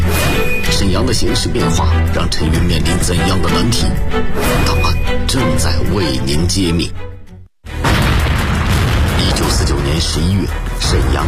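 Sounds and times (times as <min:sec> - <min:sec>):
speech: 0:01.0 - 0:07.1, 0:10.0 - 0:11.2
loud explosion: 0:07.7 - 0:11.2.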